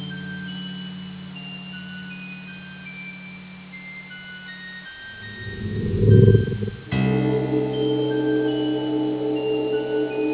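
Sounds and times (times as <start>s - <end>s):
theme music: 5.2s - 10.3s.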